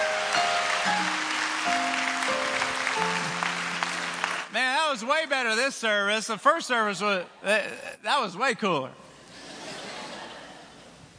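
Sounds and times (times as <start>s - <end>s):
audience applause: 0.0s - 4.6s
speech: 5.0s - 9.0s
laughter: 9.3s - 10.9s.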